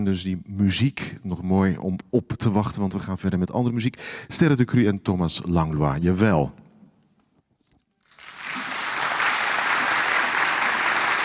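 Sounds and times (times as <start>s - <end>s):
speech: 0.0s - 6.6s
audience applause: 8.1s - 11.2s.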